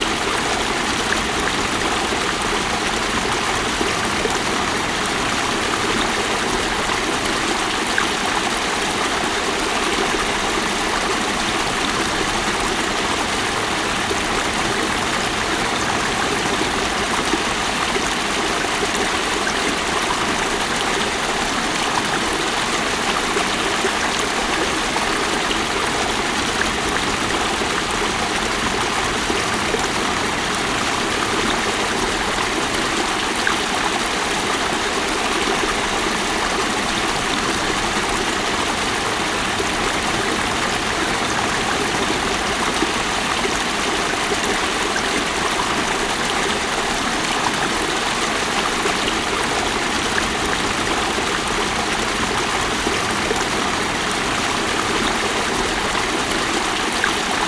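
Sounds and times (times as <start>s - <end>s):
medium small waterfall: 0.0s - 57.4s.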